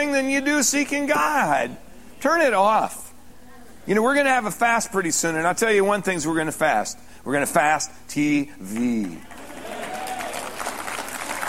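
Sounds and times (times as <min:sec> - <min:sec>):
speech: 0:00.0 - 0:03.0, 0:03.9 - 0:09.4
audience clapping: 0:08.7 - 0:11.4.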